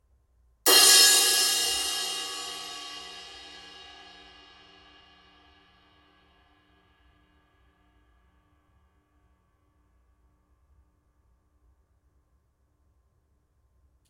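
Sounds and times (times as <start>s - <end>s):
16-inch heavy crash cymbal hit: 0.7s - 5.2s.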